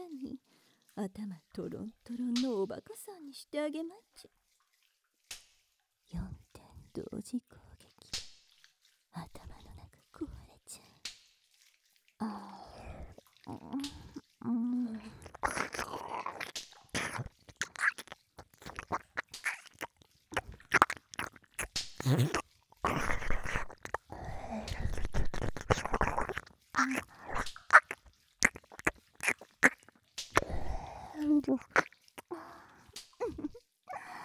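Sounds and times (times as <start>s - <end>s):
speech: 1.0s - 4.4s, 6.1s - 7.7s
ASMR mouth smacks close to the ear: 12.6s - 34.2s
ASMR ear-eating wet licking and nibbling: 12.7s - 33.6s.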